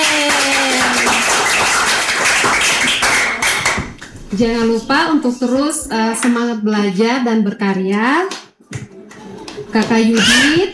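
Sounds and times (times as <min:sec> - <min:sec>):
hands clapping: 0:00.0 - 0:04.1
speech: 0:04.4 - 0:08.4, 0:09.7 - 0:10.7.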